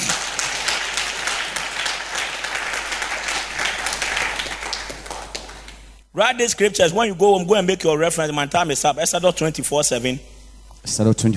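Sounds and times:
crowd applauding: 0:00.0 - 0:06.0
speech: 0:06.2 - 0:11.3.

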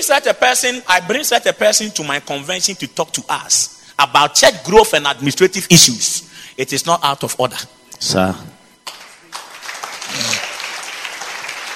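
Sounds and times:
speech: 0:00.0 - 0:08.5
audience clapping: 0:08.8 - 0:11.7
voice murmuring: 0:10.0 - 0:10.6.

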